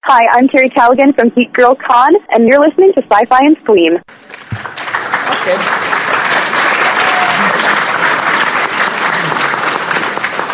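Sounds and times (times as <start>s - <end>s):
speech: 0.1s - 4.8s, 5.4s - 5.9s
audience clapping: 4.1s - 10.5s.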